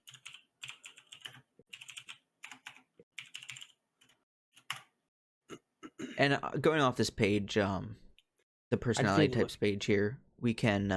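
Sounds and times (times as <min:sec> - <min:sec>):
typing on a computer keyboard while pulling up a web page: 0:00.0 - 0:04.9
speech: 0:06.2 - 0:08.0, 0:08.7 - 0:10.9.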